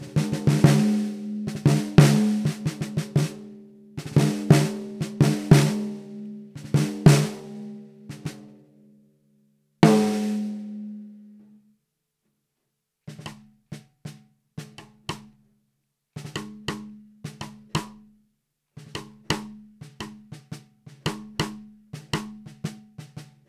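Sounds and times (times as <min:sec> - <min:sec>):
low Tama LMP1455 snare drum: 0:00.0 - 0:08.6, 0:09.8 - 0:11.4, 0:16.2 - 0:18.1, 0:18.8 - 0:23.4.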